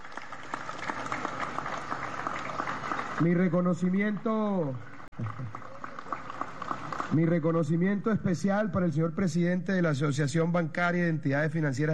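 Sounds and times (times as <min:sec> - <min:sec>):
audience applauding: 0:00.0 - 0:07.3
speech: 0:03.2 - 0:05.7, 0:07.1 - 0:11.9.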